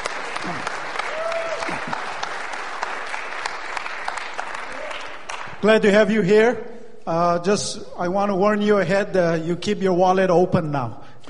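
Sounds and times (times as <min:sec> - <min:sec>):
audience applause greeting a guest speaker: 0:00.0 - 0:05.6
speech: 0:00.4 - 0:00.8, 0:05.6 - 0:11.0.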